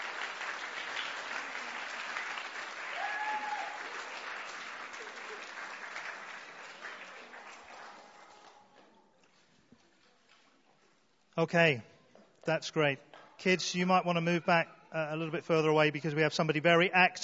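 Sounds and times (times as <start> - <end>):
audience applauding: 0.0 - 8.7
speech: 11.4 - 17.2.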